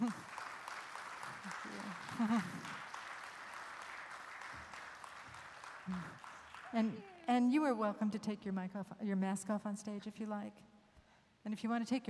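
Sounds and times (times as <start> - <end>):
audience applause at a Ventura event: 0.0 - 7.5
speech: 2.2 - 2.5, 6.7 - 10.7, 11.4 - 12.0.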